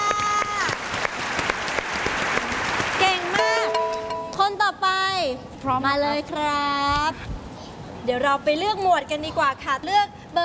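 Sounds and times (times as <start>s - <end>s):
audience applause for a young contestant in a word-spelling quiz show: 0.0s - 4.1s
speech: 5.3s - 7.3s, 8.0s - 10.4s.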